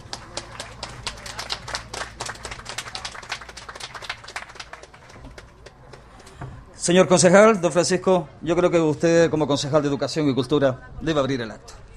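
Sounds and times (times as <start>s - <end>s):
audience applause at a civic event: 0.0s - 6.2s
speech: 6.8s - 11.8s.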